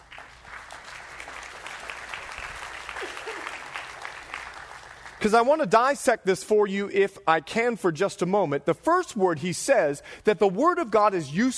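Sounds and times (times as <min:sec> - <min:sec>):
audience applause welcoming a pastor to the stage: 0:00.0 - 0:05.3
speech: 0:05.2 - 0:11.5.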